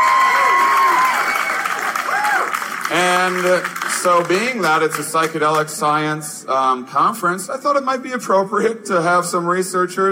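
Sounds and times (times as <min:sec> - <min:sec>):
audience voices and whoops: 0:00.0 - 0:02.6
audience applause at the Psychedelic Science 2017 conference: 0:00.0 - 0:05.7
speech: 0:02.9 - 0:10.1.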